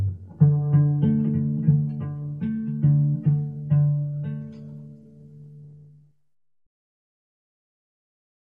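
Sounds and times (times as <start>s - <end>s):
contemplative cello: 0.0s - 6.2s.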